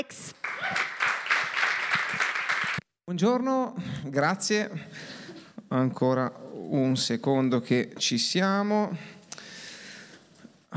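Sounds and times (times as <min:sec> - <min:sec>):
audience applause: 0:00.3 - 0:02.8
speech: 0:03.1 - 0:09.2.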